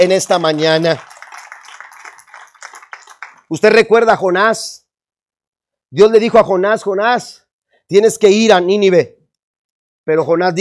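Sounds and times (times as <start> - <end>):
speech: 0.0 - 1.1, 3.5 - 4.8, 5.9 - 9.2, 10.1 - 10.5
audience applause: 0.0 - 3.7.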